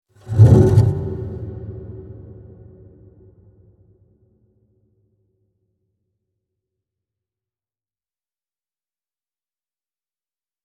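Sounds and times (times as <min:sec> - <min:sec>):
contrabass: 0:00.2 - 0:02.2.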